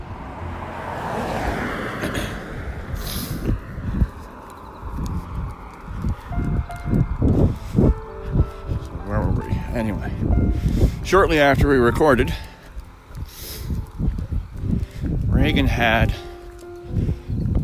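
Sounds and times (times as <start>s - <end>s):
cars driving past on a road: 0.0s - 17.6s
speech: 9.8s - 10.2s, 11.1s - 12.5s, 15.8s - 16.2s.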